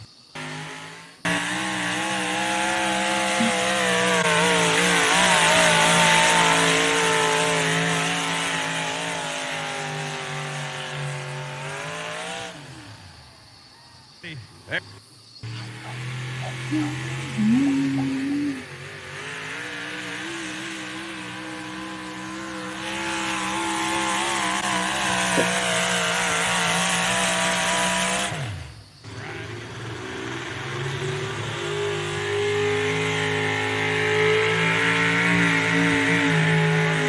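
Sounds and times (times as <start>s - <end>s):
650 cubic inch engine of an NTPA pulling vehicle roaring: 0.0s - 13.5s, 14.2s - 37.0s.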